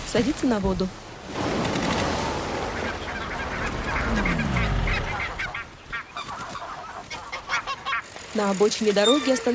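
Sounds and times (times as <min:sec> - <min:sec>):
speech: 0:00.1 - 0:01.5, 0:08.4 - 0:09.5
geese honking: 0:02.5 - 0:09.5.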